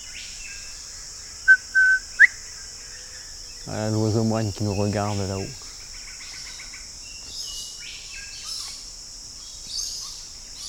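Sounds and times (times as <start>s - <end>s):
cricket chirping: 0.0s - 10.6s
speech: 3.6s - 5.6s.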